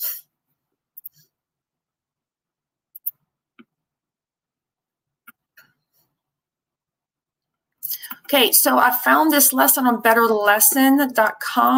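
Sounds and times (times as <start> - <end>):
mouse clicks on the Screencastify browser extension: 1.0 - 1.2, 3.0 - 3.7
speech: 8.3 - 11.7.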